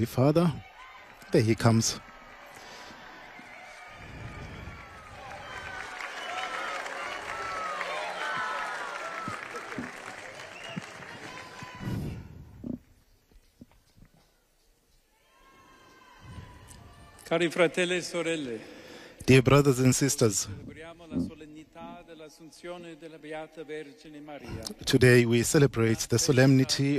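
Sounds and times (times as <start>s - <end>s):
speech: 0.0s - 0.7s, 1.3s - 2.1s, 17.3s - 21.4s, 22.3s - 26.9s
enthusiastic crowd cheering and applauding: 0.0s - 12.5s, 15.1s - 18.5s.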